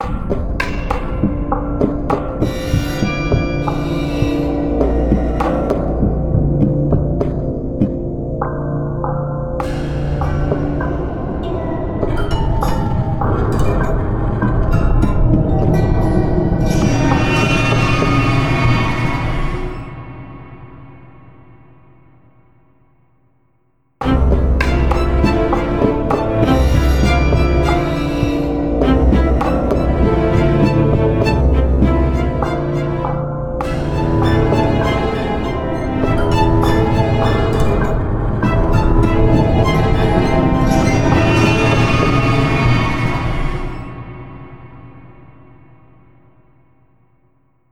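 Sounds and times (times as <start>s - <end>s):
cinematic music: 0.0s - 22.3s, 24.0s - 46.6s.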